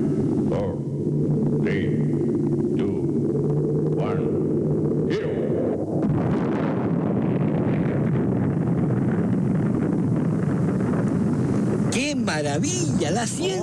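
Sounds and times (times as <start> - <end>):
rocket engines roaring at launch: 0.0 - 13.6.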